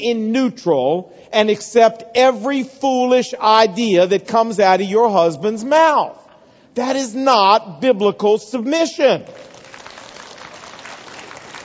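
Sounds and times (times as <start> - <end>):
speech: 0.0 - 6.2, 6.8 - 9.5
women in an audience clapping: 9.4 - 11.6.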